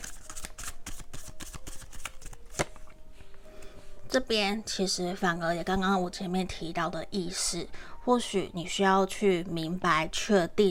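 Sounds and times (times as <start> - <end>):
tarot cards being shuffled: 0.0 - 3.0
speech: 4.2 - 10.6.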